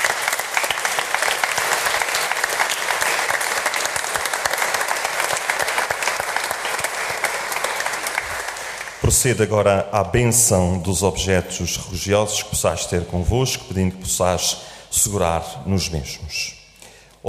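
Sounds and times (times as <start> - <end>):
applause from audience: 0.0 - 9.2
speech: 9.1 - 16.6.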